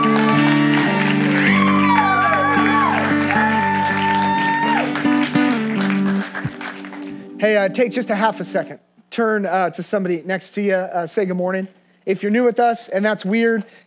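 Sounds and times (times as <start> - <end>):
crowd cheering: 0.0 - 7.4
speech: 7.4 - 13.8.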